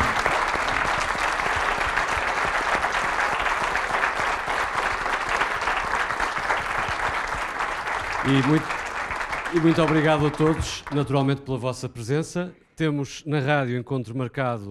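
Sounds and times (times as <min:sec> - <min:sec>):
audience applause: 0:00.0 - 0:11.4
speech: 0:08.3 - 0:08.8, 0:09.5 - 0:14.7.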